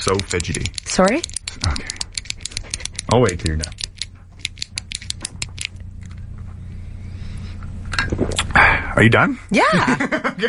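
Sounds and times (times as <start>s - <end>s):
speech: 0.0s - 2.1s, 3.1s - 3.9s, 9.0s - 10.4s
clicky pen being clicked: 0.0s - 5.8s.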